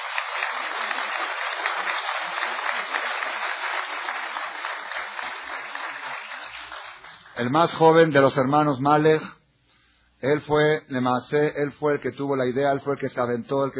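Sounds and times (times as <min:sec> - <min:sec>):
crowd applauding: 0:00.0 - 0:07.8
speech: 0:07.4 - 0:09.4, 0:10.2 - 0:13.7.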